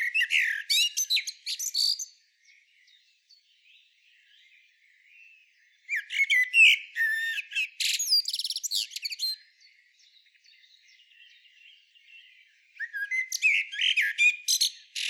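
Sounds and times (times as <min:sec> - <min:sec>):
common blackbird calls: 0:00.0 - 0:15.0.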